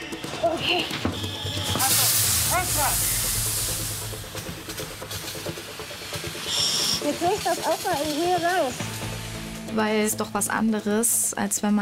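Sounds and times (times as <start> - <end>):
fire crackling: 0.3 - 10.4
speech: 0.6 - 1.1, 7.1 - 8.9, 9.7 - 11.7
fire hose spraying water onto a burning fire: 1.7 - 9.7.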